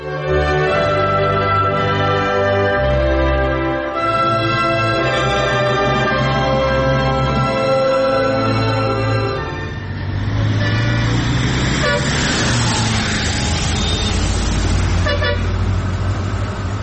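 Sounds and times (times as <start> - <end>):
road noise: 0.0 - 16.8
car engine rumble while pulling over to the roadside: 4.6 - 16.8
short car horn toots: 11.8 - 12.2, 15.0 - 15.5.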